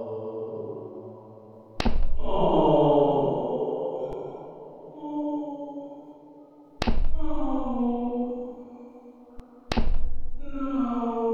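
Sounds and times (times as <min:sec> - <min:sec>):
person groaning: 0:02.1 - 0:04.2, 0:06.9 - 0:08.3, 0:09.8 - 0:11.3.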